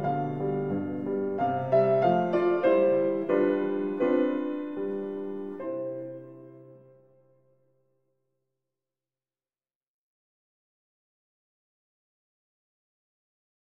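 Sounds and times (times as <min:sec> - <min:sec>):
andante piano sonata in G major: 0:00.0 - 0:08.1.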